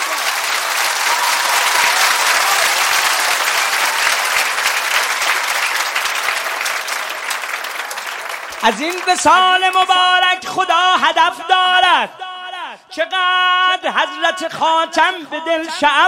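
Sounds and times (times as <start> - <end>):
crowd applause at a wedding celebration: 0.0 - 10.2
speech: 8.6 - 12.3, 13.0 - 16.0.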